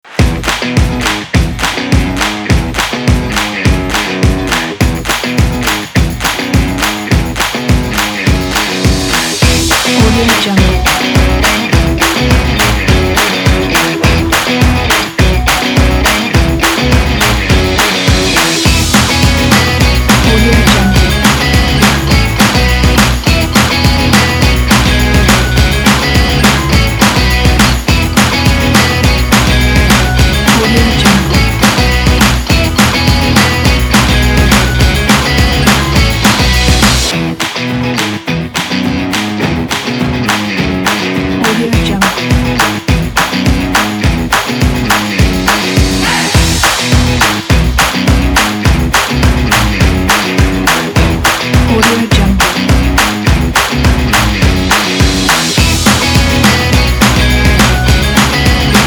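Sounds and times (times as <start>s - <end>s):
happy upbeat music: 0.0s - 58.8s.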